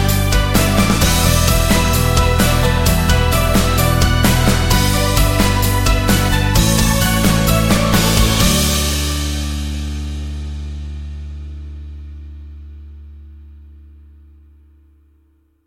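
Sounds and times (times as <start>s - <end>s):
summer corporate music: 0.0s - 11.8s.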